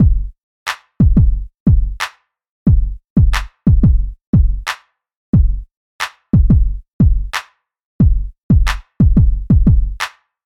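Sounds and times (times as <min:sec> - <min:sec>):
music beat: 0:00.0 - 0:00.3, 0:01.0 - 0:02.1, 0:02.7 - 0:04.7, 0:06.4 - 0:07.4, 0:08.0 - 0:10.1.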